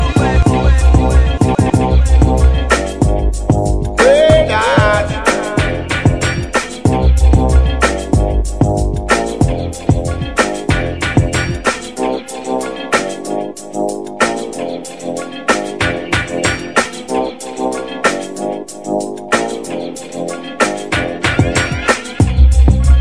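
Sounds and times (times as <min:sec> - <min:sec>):
riddim instrumental: 0:00.0 - 0:22.9.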